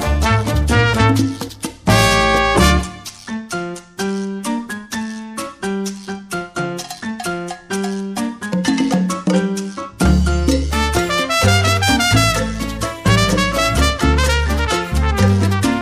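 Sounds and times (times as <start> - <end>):
Latin jazz music: 0.0 - 15.8.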